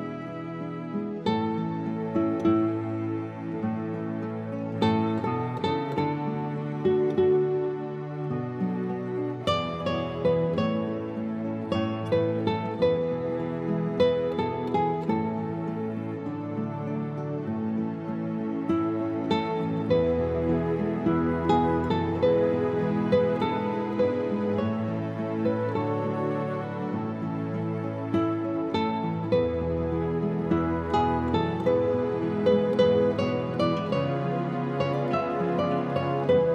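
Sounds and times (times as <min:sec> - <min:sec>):
acoustic praise instrumental music: 0:00.0 - 0:36.5.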